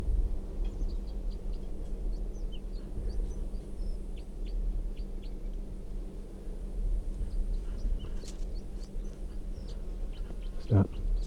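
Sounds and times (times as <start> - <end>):
low rumble: 0.0 - 11.2
red crossbill song: 0.6 - 5.6, 7.3 - 11.2.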